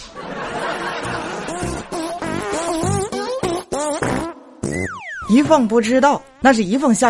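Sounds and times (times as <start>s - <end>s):
laughter: 0.0s - 3.0s
fart: 1.0s - 5.4s
speech: 5.3s - 7.0s.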